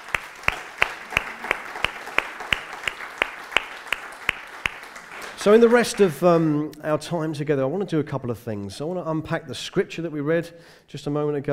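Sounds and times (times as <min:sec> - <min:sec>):
audience applauding: 0:00.0 - 0:06.2
one clapper clapping in a sharp regular beat: 0:00.0 - 0:06.2
speech: 0:05.4 - 0:11.5.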